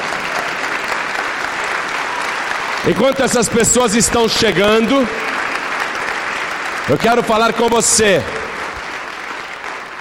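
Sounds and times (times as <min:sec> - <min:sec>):
church congregation applauding in praise of the Lord: 0:00.0 - 0:09.9
speech: 0:02.8 - 0:05.4, 0:06.9 - 0:08.4.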